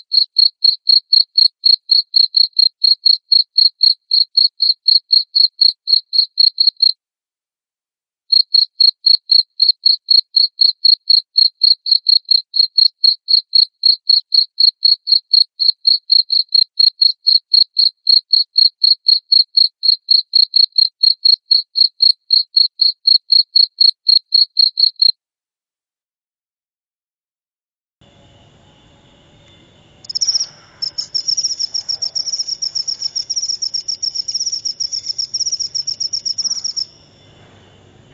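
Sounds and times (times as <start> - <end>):
cricket chirping: 0.0 - 6.9, 8.3 - 25.1, 28.0 - 38.1.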